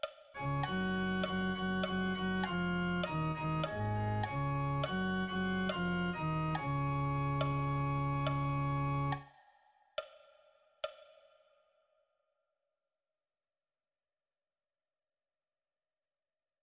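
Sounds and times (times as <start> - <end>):
bass: 0.4 - 9.2.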